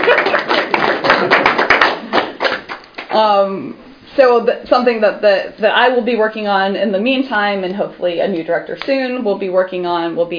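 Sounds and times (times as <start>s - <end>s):
round of applause: 0.0s - 3.2s
speech: 3.2s - 10.3s.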